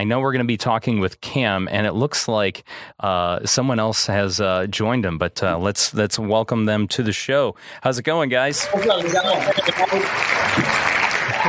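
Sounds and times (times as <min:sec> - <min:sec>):
speech: 0:00.0 - 0:11.0
round of applause: 0:08.5 - 0:11.4.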